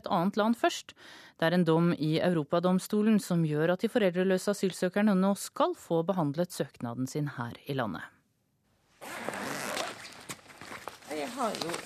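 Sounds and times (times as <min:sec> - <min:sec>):
speech: 0:00.0 - 0:08.2, 0:11.1 - 0:11.8
zipper pulled open on a backpack: 0:09.0 - 0:11.8.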